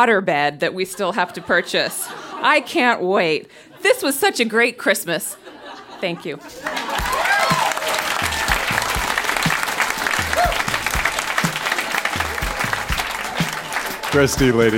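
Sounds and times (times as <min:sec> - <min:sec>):
speech: 0:00.0 - 0:06.9, 0:14.1 - 0:14.7
laughter: 0:00.9 - 0:03.0, 0:05.3 - 0:14.7
audience applause: 0:06.6 - 0:14.7
faint cheers: 0:06.8 - 0:14.3.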